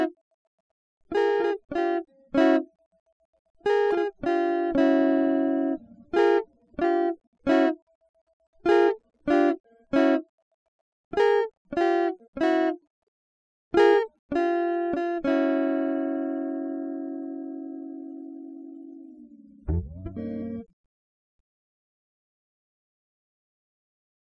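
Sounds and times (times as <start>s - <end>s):
guitar: 0.0s - 0.2s, 1.1s - 2.9s, 3.6s - 10.3s, 11.1s - 12.9s, 13.7s - 20.8s.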